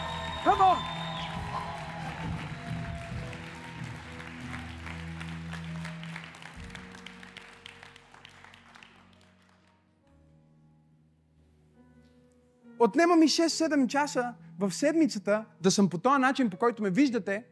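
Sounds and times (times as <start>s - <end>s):
crowd clapping and cheering: 0.0s - 10.0s
speech: 12.8s - 17.4s.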